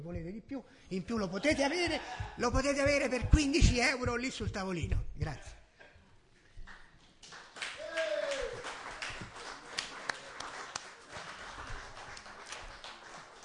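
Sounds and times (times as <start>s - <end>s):
speech: 0.0s - 5.6s
audience applause: 7.2s - 13.4s
vocal cheer: 7.8s - 8.7s.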